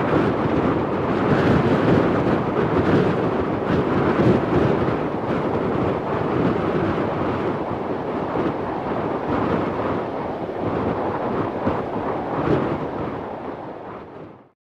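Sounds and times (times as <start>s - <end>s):
heavy coastal wind: 0.0s - 14.6s.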